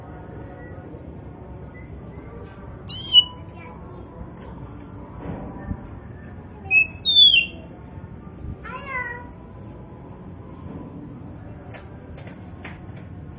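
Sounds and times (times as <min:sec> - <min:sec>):
Oriental magpie-robin whistled phrases: 0:02.9 - 0:03.4, 0:06.7 - 0:07.6.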